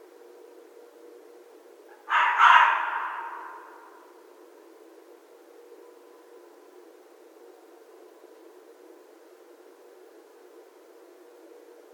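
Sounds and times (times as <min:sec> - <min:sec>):
red fox shrieking: 0:02.0 - 0:04.0.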